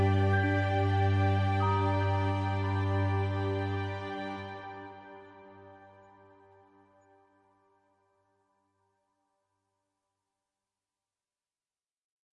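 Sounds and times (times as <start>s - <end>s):
cosmic ambient music: 0.0s - 7.2s.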